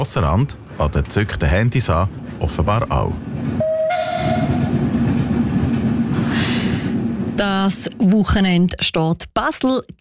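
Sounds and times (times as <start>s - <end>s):
speech: 0.0s - 3.7s, 7.4s - 9.9s
steam tram running on rails: 0.0s - 8.8s
thin whistle-like tone: 3.6s - 4.7s.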